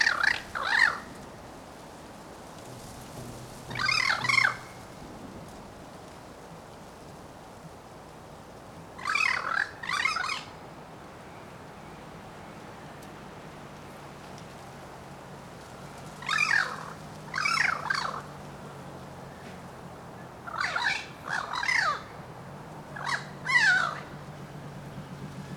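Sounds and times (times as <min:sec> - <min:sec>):
bird harsh squawks: 0:00.0 - 0:01.1, 0:03.7 - 0:04.8, 0:09.0 - 0:10.5, 0:16.2 - 0:18.2, 0:20.5 - 0:22.1, 0:23.0 - 0:24.1.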